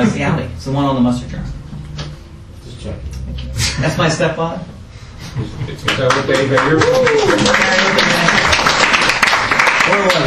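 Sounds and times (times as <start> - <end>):
speech: 0.0 - 1.6, 2.8 - 4.7, 5.4 - 8.6, 9.9 - 10.2
audience applause: 5.9 - 10.2.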